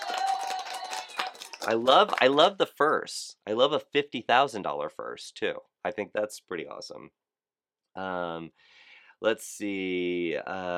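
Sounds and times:
brief round of applause from a small group: 0:00.0 - 0:02.6
speech: 0:01.6 - 0:07.2, 0:08.0 - 0:10.7.

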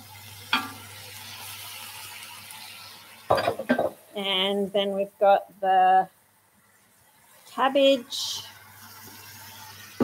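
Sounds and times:
faint hiss: 0:00.0 - 0:10.0
carrots clattering into a cooking pot: 0:03.3 - 0:04.0
speech: 0:03.3 - 0:06.2, 0:07.6 - 0:08.5.

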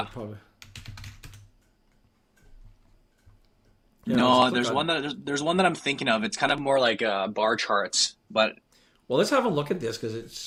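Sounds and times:
speech: 0:00.0 - 0:00.5, 0:04.0 - 0:10.4
faint typing on a computer keyboard: 0:00.0 - 0:03.7.

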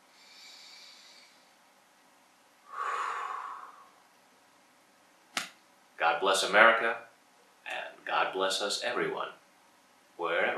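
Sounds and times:
deep breath during a guided tapping session: 0:00.0 - 0:01.6, 0:02.6 - 0:04.0
faint hiss: 0:00.0 - 0:10.5
speech: 0:06.1 - 0:07.1, 0:08.1 - 0:09.4, 0:10.2 - 0:10.5.

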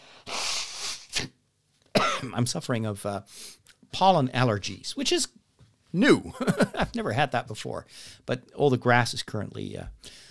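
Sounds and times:
person blowing nose: 0:00.1 - 0:01.4
speech: 0:02.2 - 0:10.2.

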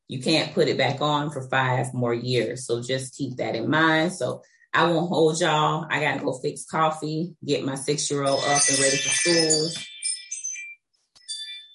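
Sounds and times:
speech: 0:00.1 - 0:09.9
home alarm system alert chime: 0:08.2 - 0:11.7.

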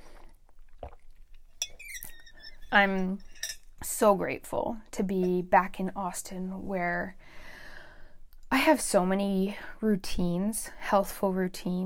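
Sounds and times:
sipping water: 0:00.0 - 0:02.7
speech: 0:02.7 - 0:03.3, 0:03.9 - 0:07.3, 0:08.6 - 0:11.8.

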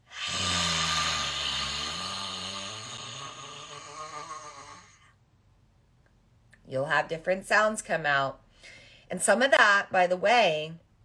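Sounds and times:
Lion's Breath yoga forceful raspy exhale with growl: 0:00.0 - 0:05.1
speech: 0:06.7 - 0:10.8.

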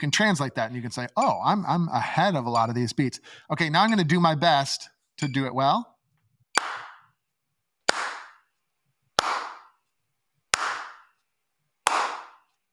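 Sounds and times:
speech: 0:00.0 - 0:05.9
sharp hand claps: 0:06.6 - 0:07.1, 0:07.9 - 0:08.4, 0:09.2 - 0:09.8, 0:10.6 - 0:11.2, 0:11.9 - 0:12.5.

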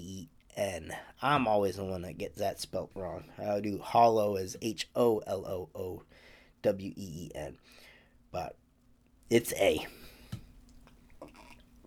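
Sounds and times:
speech: 0:00.6 - 0:08.6, 0:09.3 - 0:10.1
person sipping coffee: 0:10.6 - 0:11.8.

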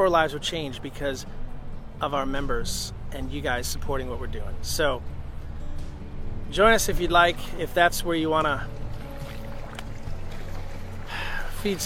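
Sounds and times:
speech: 0:00.0 - 0:01.4, 0:02.0 - 0:05.2, 0:06.5 - 0:08.8, 0:11.6 - 0:11.8
waves: 0:06.6 - 0:11.8.

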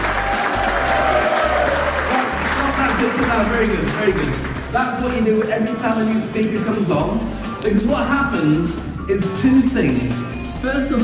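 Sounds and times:
audience clapping and cheering: 0:00.0 - 0:05.9
speech: 0:03.4 - 0:11.0.

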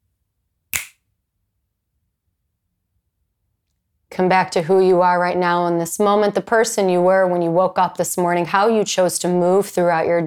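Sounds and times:
finger snap: 0:00.7 - 0:01.0
speech: 0:04.2 - 0:10.2.

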